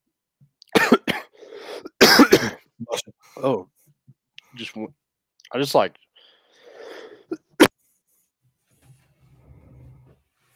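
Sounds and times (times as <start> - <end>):
cough: 0.7 - 3.1, 7.3 - 7.8
speech: 3.4 - 3.7, 4.6 - 6.0.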